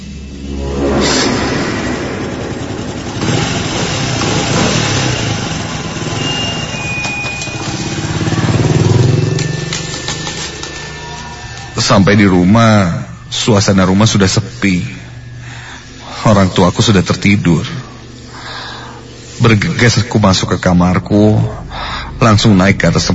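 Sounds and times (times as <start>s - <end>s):
motorcycle throttle revving as the rider pulls away from a school gate: 0.0s - 11.5s
speech: 11.9s - 15.0s, 16.2s - 17.8s, 19.4s - 21.6s, 22.2s - 23.1s.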